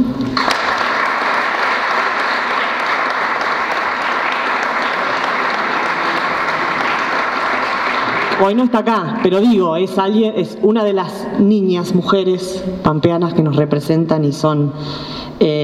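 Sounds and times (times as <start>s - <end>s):
audience applause: 0.4s - 9.5s
speech: 8.4s - 15.6s.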